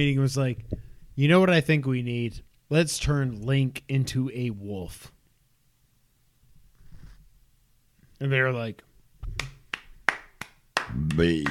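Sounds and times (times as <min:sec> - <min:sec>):
speech: 0:00.0 - 0:05.2, 0:08.2 - 0:09.5, 0:10.9 - 0:11.5
slow hand claps: 0:09.2 - 0:11.5.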